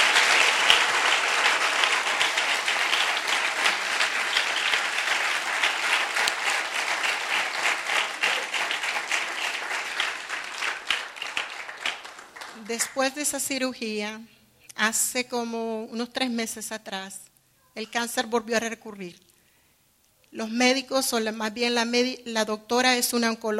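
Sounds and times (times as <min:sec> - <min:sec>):
audience applauding: 0:00.0 - 0:13.2
speech: 0:12.7 - 0:19.3, 0:20.3 - 0:23.5.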